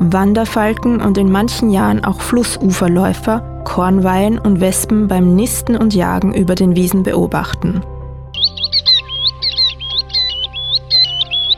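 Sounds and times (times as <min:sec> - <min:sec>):
speech: 0:00.1 - 0:07.9
tern calling: 0:08.4 - 0:11.5.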